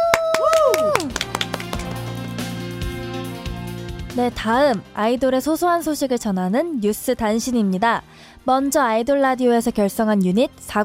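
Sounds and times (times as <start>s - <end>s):
hand clapping in studio: 0.0s - 3.1s
speech: 4.2s - 10.8s.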